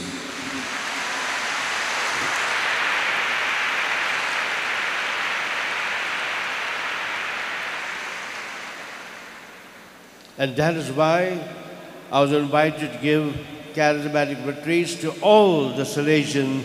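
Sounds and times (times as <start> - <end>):
crowd applause: 0.0 - 10.0
speech: 10.4 - 16.6.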